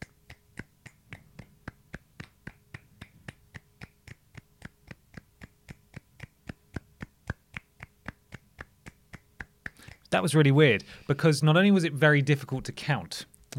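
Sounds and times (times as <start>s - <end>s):
light hand clapping: 0.0s - 10.1s
speech: 10.1s - 13.5s.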